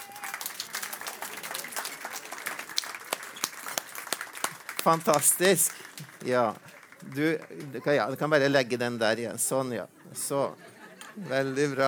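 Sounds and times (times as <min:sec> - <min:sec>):
audience applauding children: 0:00.0 - 0:08.3
speech: 0:04.8 - 0:11.8
laughter: 0:10.0 - 0:11.8.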